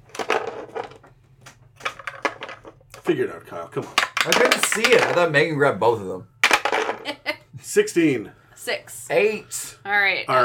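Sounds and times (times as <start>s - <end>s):
dice rolling: 0.0s - 1.0s, 1.8s - 2.8s, 4.0s - 5.3s, 6.4s - 7.0s
speech: 3.1s - 6.3s, 7.0s - 10.4s.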